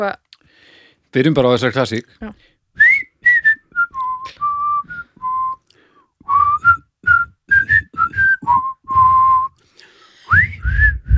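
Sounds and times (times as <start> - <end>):
speech: 0.0 - 0.2, 1.1 - 2.5
person whistling a tune: 2.8 - 5.7, 6.3 - 9.6, 10.3 - 11.1.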